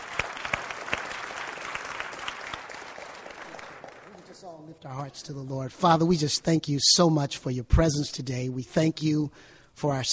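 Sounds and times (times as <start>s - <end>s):
audience clapping for the choir: 0.0s - 4.8s
speech: 4.4s - 10.1s.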